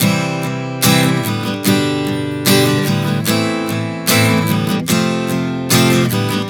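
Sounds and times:
acoustic guitar playing a C-G-Am-F chord progression: 0.0s - 6.4s.

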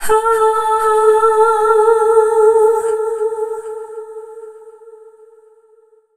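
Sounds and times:
female dance vocals: 0.0s - 4.0s.

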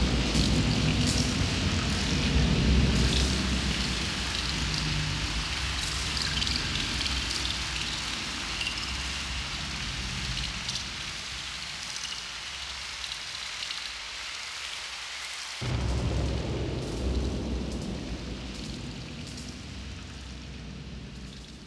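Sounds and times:
thunder: 0.0s - 11.0s, 15.6s - 21.6s.

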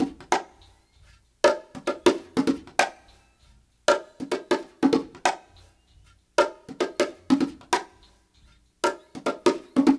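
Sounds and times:
funky conga drum loop: 0.0s - 9.9s.

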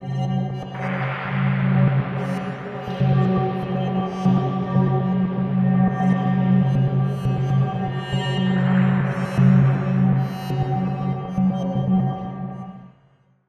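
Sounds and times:
dark synth cinematic drama soundbed: 0.6s - 12.6s.

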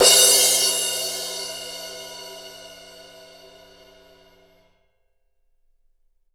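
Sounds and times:
17-inch crash cymbal hit loudly: 0.0s - 4.7s.

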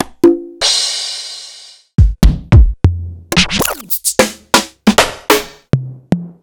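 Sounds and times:
Roland TR-1 prototype drum machine: 2.0s - 6.4s.

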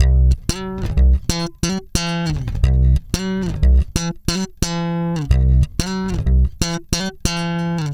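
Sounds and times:
funk bass in C sharp: 0.0s - 7.9s.

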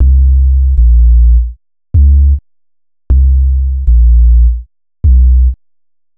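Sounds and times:
futurist drum and bass music: 0.0s - 2.4s, 3.1s - 5.6s.

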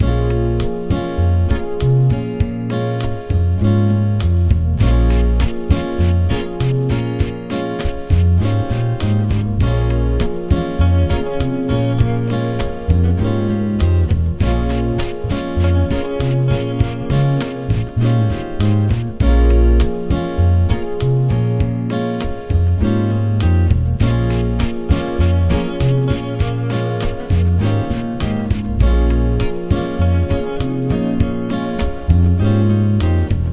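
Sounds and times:
Brazilian bass grooves: 0.0s - 2.7s, 3.3s - 21.9s, 22.5s - 31.4s, 32.1s - 33.5s.

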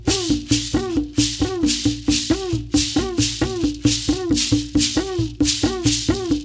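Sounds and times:
ritual percussion: 0.0s - 6.4s.

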